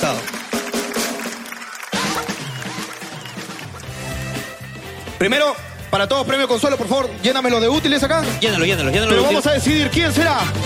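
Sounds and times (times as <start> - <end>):
audience applause: 0.0 - 4.6
music playing: 0.0 - 10.6
speech: 5.2 - 10.6.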